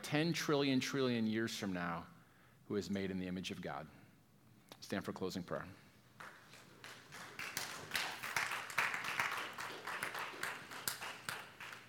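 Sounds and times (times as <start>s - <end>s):
speech: 0.1s - 4.0s, 4.8s - 5.8s
a few people clapping: 6.2s - 11.8s.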